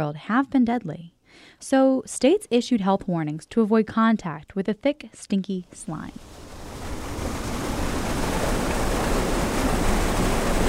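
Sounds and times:
speech: 0.0 - 6.4
rushing water in a drinking water treatment plant in Huntington, West Virginia: 6.1 - 10.6.

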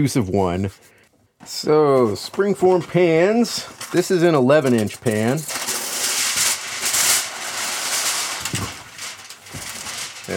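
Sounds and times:
speech: 0.0 - 5.6
aluminum foil being handled: 3.6 - 10.3.

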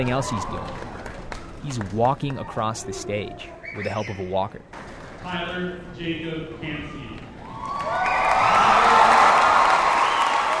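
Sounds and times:
speech: 0.0 - 0.9, 1.6 - 7.2
crowd cheering at graduation: 0.0 - 4.1, 7.4 - 10.5.

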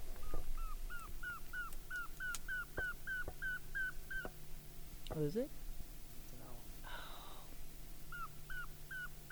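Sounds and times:
northern saw-whet owl calling: 0.2 - 4.5, 8.1 - 9.3
speech: 5.2 - 5.6.

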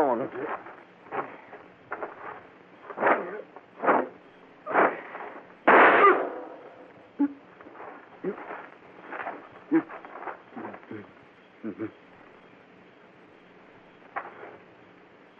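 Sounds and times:
people talking: 0.0 - 1.5, 3.0 - 3.6, 9.7 - 12.0
gunshot: 4.7 - 7.0.

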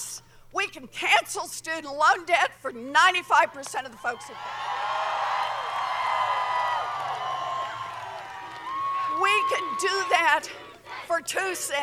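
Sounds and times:
speech: 0.0 - 4.9, 9.2 - 11.8
large rally crowd roaring with cheers and whoops: 3.9 - 11.8
rally crowd chanting: 6.1 - 11.8.

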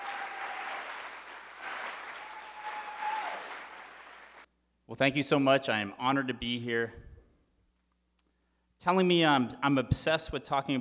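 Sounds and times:
audience applause: 0.0 - 4.5
speech: 4.9 - 7.0, 8.8 - 10.8.

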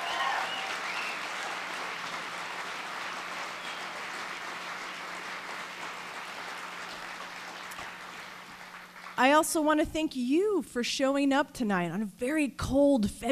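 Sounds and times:
audience round of applause: 0.0 - 9.2
speech: 9.2 - 13.3.

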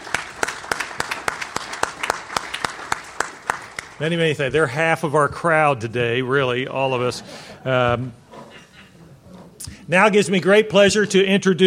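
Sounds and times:
audience applause: 0.0 - 4.0
speech: 4.0 - 8.2, 9.9 - 11.6.

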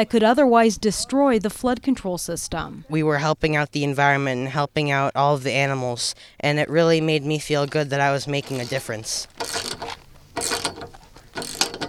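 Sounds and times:
speech: 0.0 - 9.4
ratchet wrench tightening bolts on a metal pole: 9.4 - 11.8.

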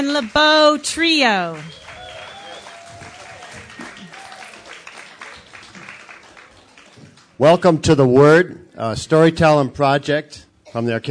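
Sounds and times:
speech: 0.0 - 1.8, 7.4 - 11.0
audience applause after live music at a storytelling evening: 0.0 - 7.7.

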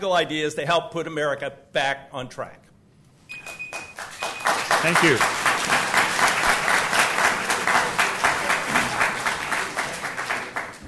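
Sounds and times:
speech: 0.0 - 2.7, 4.8 - 5.9
crowd applause: 3.7 - 10.8.

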